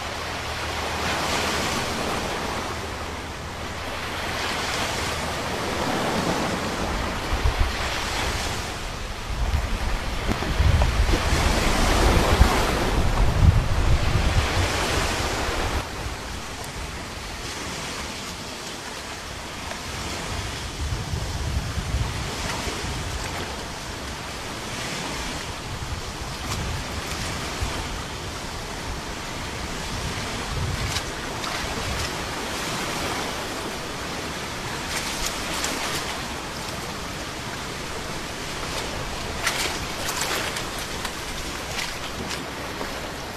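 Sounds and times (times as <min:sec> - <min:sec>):
sea waves: 0:00.0 - 0:43.3.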